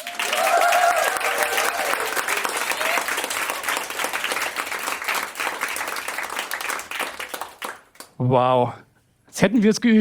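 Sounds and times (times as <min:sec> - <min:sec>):
person whooping: 0:00.0 - 0:03.1
live audience applauding at podcast recording: 0:00.0 - 0:08.1
speech: 0:08.2 - 0:09.9.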